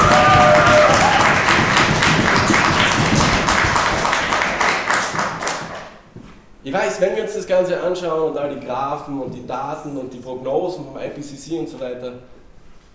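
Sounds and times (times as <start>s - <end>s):
audience applause: 0.0s - 6.0s
speech: 6.8s - 12.4s.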